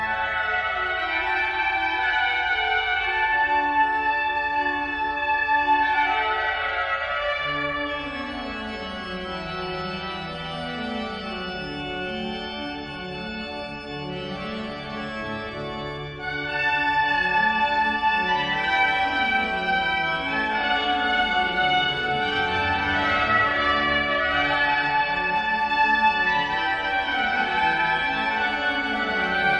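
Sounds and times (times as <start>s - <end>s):
organ for an entrance procession: 0.0s - 29.5s
trumpet for an entrance procession: 19.9s - 29.5s.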